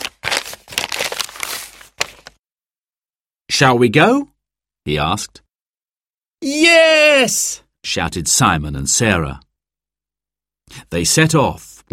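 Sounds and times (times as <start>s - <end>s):
paper map being refolded: 0.0s - 2.4s
speech: 3.6s - 5.4s, 6.4s - 9.5s, 10.7s - 11.9s.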